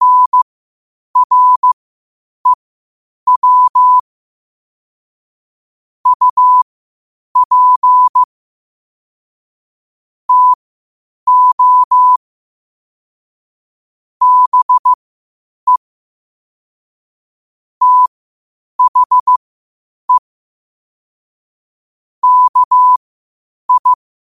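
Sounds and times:
morse code at 5 wpm: 0.0 - 0.4, 1.2 - 1.8, 3.3 - 4.0, 6.1 - 6.6, 7.4 - 8.3, 10.3 - 10.6, 11.3 - 12.2, 14.2 - 15.0, 17.8 - 18.1, 18.8 - 19.4, 22.2 - 23.0, 23.7 - 24.0.

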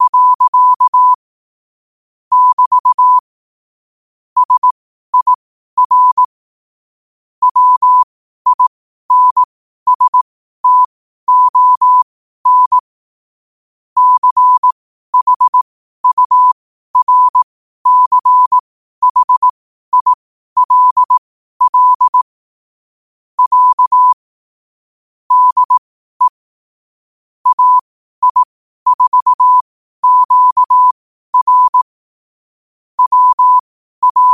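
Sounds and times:
morse code at 5 wpm: 0.0 - 1.2, 2.3 - 3.2, 4.4 - 6.3, 7.4 - 12.8, 14.0 - 22.3, 23.4 - 24.2, 25.3 - 26.4, 27.4 - 31.9, 33.0 - 34.3.

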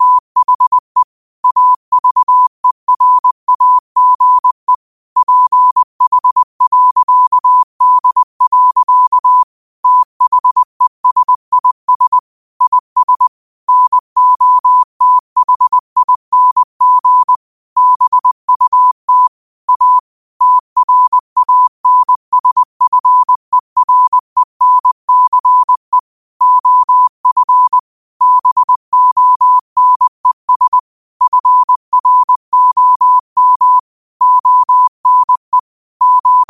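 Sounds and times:
morse code at 5 wpm: 0.0 - 36.4.

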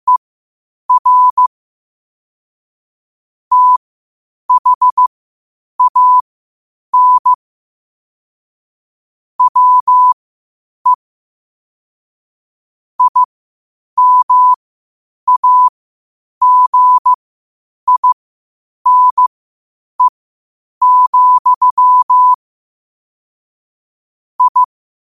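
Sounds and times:
morse code beeps at 5 wpm: 0.9 - 1.4, 3.5 - 3.8, 4.5 - 5.0, 5.8 - 6.2, 7.0 - 7.4, 9.4 - 10.2, 13.0 - 13.3, 14.0 - 14.6, 15.3 - 15.7, 16.4 - 17.2, 17.9 - 18.2, 18.9 - 19.3, 20.8 - 22.4, 24.4 - 24.7.

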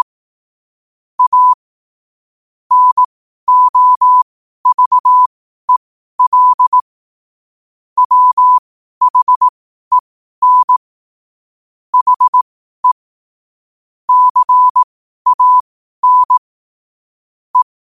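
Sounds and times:
morse code at 5 wpm: 1.2 - 1.6, 2.7 - 6.8, 8.0 - 10.8, 12.0 - 13.0, 14.1 - 16.4.

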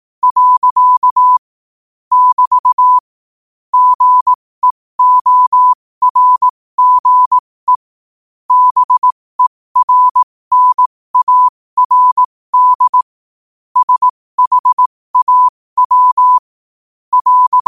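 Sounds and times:
morse code at 5 wpm: 0.2 - 1.4, 2.1 - 3.0, 3.7 - 7.8, 8.5 - 13.1, 13.8 - 16.4, 17.1 - 17.6.

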